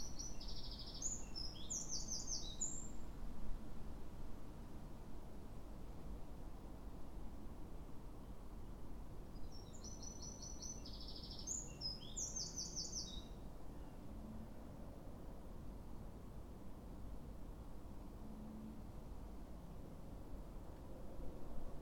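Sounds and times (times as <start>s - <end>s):
Eurasian wren song: 0.0s - 2.9s, 9.5s - 13.4s
low rumbling background noise: 0.0s - 21.8s.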